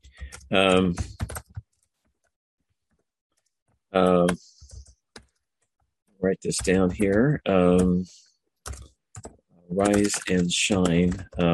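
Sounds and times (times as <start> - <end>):
computer keyboard typing: 0.0 - 1.8, 4.0 - 5.7, 6.3 - 11.5
speech: 0.5 - 1.1, 6.2 - 8.3, 9.7 - 11.5.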